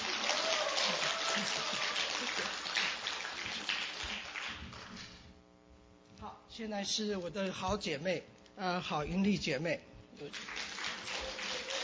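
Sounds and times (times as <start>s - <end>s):
audience applause: 0.0s - 5.0s, 10.3s - 11.8s
speech: 1.4s - 2.3s, 6.6s - 10.5s.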